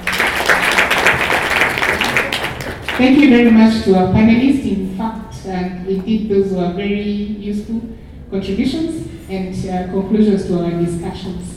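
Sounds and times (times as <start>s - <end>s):
audience clapping at a panel meeting: 0.0s - 3.7s
speech: 3.0s - 11.5s.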